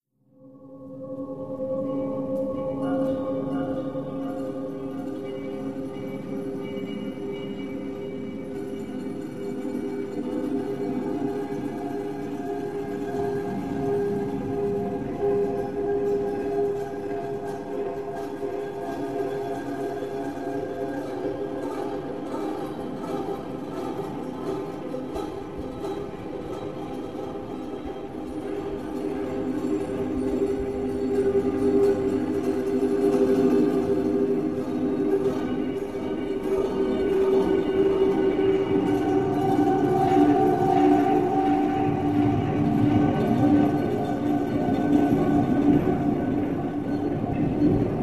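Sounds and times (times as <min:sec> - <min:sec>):
light distorted metallic tunnel tone: 0:00.4 - 0:48.0.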